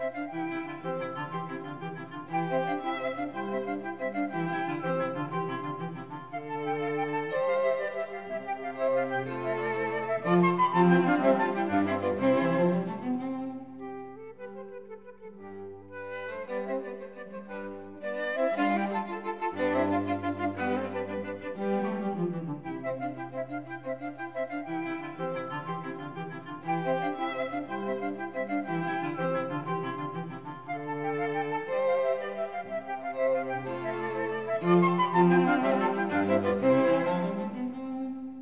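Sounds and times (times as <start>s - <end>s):
cello: 0.0s - 38.4s
flute: 0.0s - 38.4s
violin: 0.0s - 38.4s.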